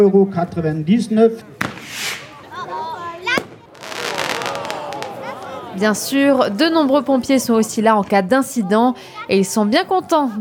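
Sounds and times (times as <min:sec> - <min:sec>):
speech: 0:00.0 - 0:01.6, 0:05.8 - 0:10.4
fireworks fountain battery going off: 0:01.6 - 0:02.5, 0:03.3 - 0:05.4.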